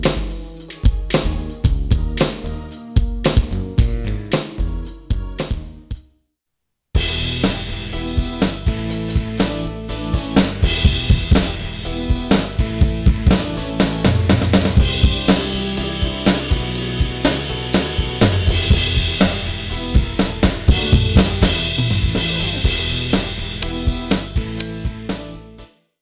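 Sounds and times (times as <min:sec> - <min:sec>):
electronic mesh drum kit playing along: 0:00.0 - 0:06.0, 0:07.0 - 0:25.4.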